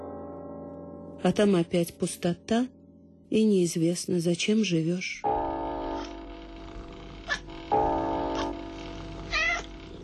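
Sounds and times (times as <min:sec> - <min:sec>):
speech: 0:01.2 - 0:05.3
cat purring: 0:05.9 - 0:10.0
cat meowing: 0:09.3 - 0:09.8.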